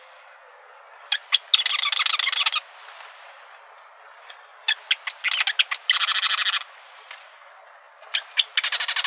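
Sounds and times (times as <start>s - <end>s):
marsh wren rattled song in Arizona: 1.1s - 3.2s, 4.6s - 7.1s, 8.1s - 9.0s.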